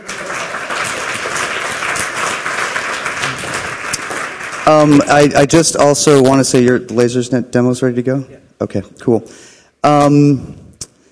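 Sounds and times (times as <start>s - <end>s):
audience applause: 0.0s - 5.4s
speech: 4.7s - 10.6s.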